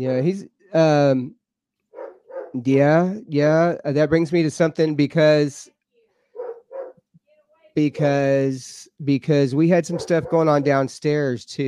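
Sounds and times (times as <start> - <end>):
speech: 0.0 - 1.4, 2.5 - 5.7, 7.8 - 11.6
newly acquired dog barking with a tonal whine: 1.9 - 2.6, 6.3 - 7.0, 9.8 - 10.8.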